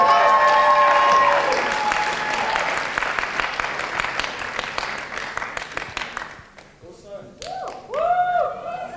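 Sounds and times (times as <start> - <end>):
audience whooping: 0.0 - 3.0, 7.5 - 8.9
audience clapping for a performance group at a community showcase: 0.0 - 6.8.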